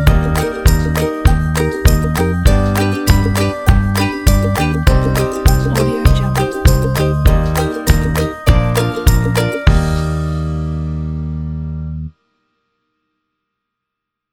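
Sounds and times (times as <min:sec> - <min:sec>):
positive happy ukulele: 0:00.0 - 0:10.6.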